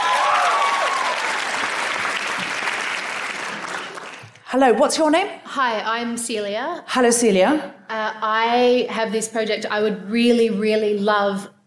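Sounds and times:
audience round of applause: 0.0 - 4.4
speech: 4.5 - 11.6.

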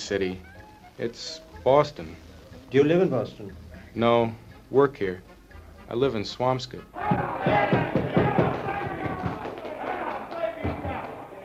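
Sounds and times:
speech: 0.1 - 5.3, 5.9 - 7.8
bar crowd uproar watching television: 6.9 - 11.4.

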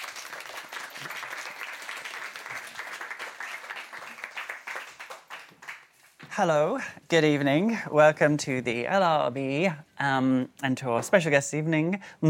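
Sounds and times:
audience applause welcoming guests: 0.0 - 6.2
speech: 6.4 - 12.2.

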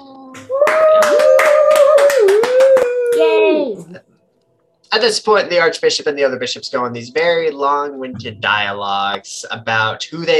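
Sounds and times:
people clapping: 0.0 - 3.8
speech: 4.9 - 10.3.

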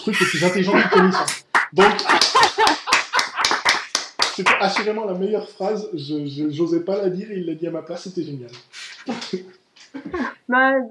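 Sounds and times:
speech: 0.0 - 3.0, 4.4 - 10.8
laughter: 0.0 - 5.1, 8.8 - 10.4
hand clapping: 0.8 - 5.0, 8.5 - 9.4.

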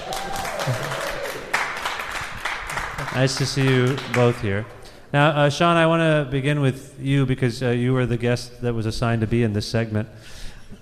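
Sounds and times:
audience applause: 0.0 - 4.5
speech: 3.2 - 10.4.

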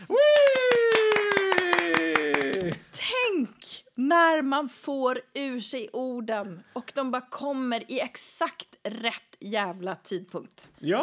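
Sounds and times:
applause: 0.0 - 2.9
speech: 4.1 - 11.0.

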